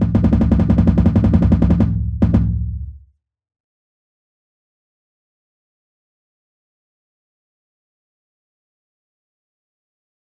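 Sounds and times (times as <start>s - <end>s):
drumline bass drums playing slowly: 0.0s - 3.0s.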